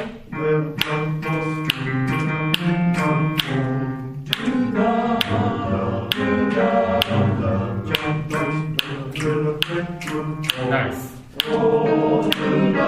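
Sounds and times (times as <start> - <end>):
sustained sung tones: 0.0 - 12.8
choir singers snapping their fingers: 0.8 - 3.6, 8.0 - 10.6, 12.3 - 12.5.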